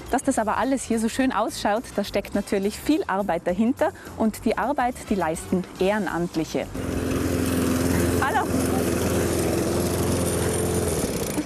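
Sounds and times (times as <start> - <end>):
speech: 0.1 - 7.1
lawn mower engine mowing grounds beside a pond: 6.7 - 11.4.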